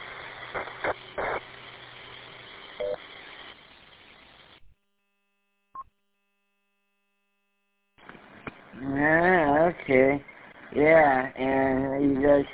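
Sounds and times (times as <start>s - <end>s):
hissy radio static: 0.0s - 4.6s, 8.0s - 12.5s
short electronic tone bursts: 2.7s - 4.6s
speech: 9.9s - 12.5s.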